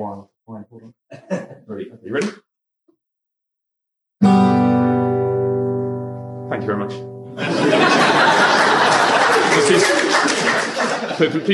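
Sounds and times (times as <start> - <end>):
speech: 0.0 - 2.4, 6.6 - 7.8, 11.2 - 11.5
laughter: 1.1 - 1.8, 7.4 - 11.5
G chord strummed on guitar: 4.2 - 7.4.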